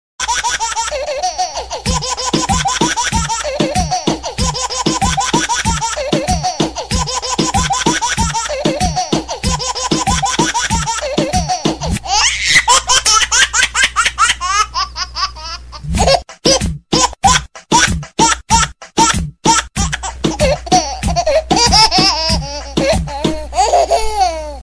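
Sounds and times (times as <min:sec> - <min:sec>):
baby laughing ringtone: 0:00.2 - 0:24.6.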